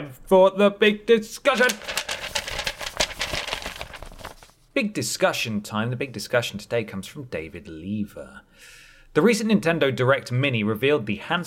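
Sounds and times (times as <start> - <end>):
speech: 0.0 - 2.0, 4.8 - 11.4
papers shuffling: 1.4 - 4.7.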